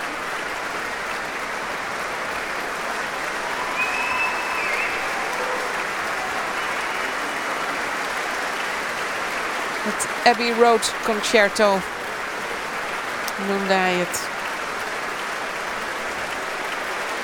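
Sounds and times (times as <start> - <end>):
concert audience applause: 0.0 - 17.2
faint high whistle: 3.5 - 7.5
speech: 9.9 - 12.0, 13.4 - 14.4.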